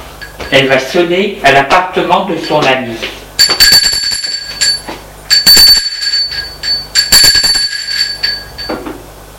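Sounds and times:
person speaking: 0.4 - 3.2
apartment doorbell ringing in shrill buzzing bursts: 3.4 - 9.0.

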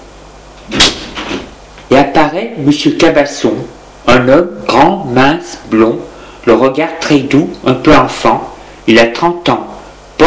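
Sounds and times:
door opening with airy whoosh: 0.7 - 1.6
speech: 2.2 - 10.2.

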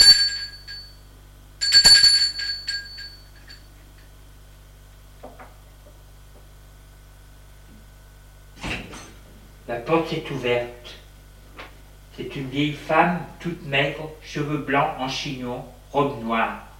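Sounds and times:
doorbell ringing: 0.0 - 1.0, 1.6 - 3.7
speech: 9.7 - 11.0, 12.2 - 16.6.

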